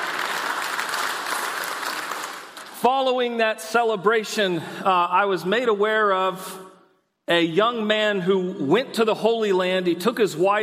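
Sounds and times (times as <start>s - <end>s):
audience clapping: 0.0s - 3.1s
speech: 2.8s - 6.6s, 7.3s - 10.6s.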